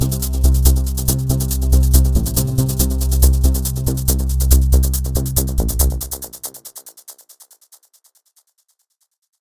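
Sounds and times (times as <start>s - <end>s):
rhythmic beat: 0.0s - 7.4s.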